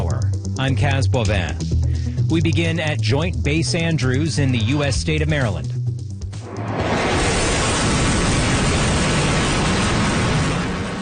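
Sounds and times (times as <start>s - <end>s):
speech: 0.6s - 5.8s
fighter jet flyover: 6.4s - 10.9s.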